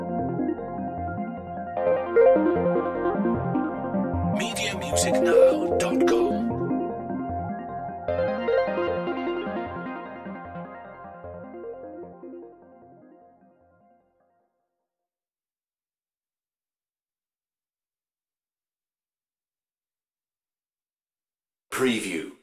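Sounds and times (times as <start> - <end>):
ambient rhythmic underscore music: 0.0 - 14.0.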